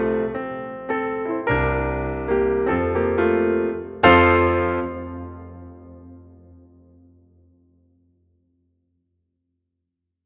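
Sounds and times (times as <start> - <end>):
solo piano: 0.0 - 7.6.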